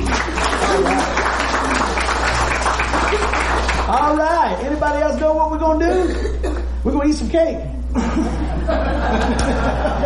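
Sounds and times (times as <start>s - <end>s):
laughter: 0.0s - 3.8s, 7.9s - 10.0s
audience clapping: 0.0s - 5.4s
speech: 3.9s - 10.0s.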